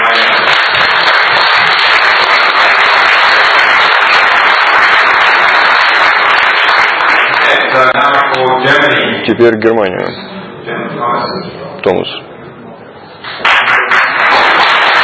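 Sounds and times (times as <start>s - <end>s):
crowd applauding: 0.0s - 8.4s, 13.2s - 15.0s
speech: 9.2s - 10.2s, 11.4s - 12.2s.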